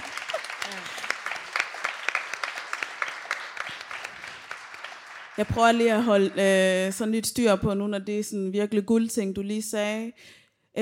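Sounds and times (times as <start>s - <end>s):
audience applause: 0.0s - 6.6s
speech: 5.4s - 10.7s.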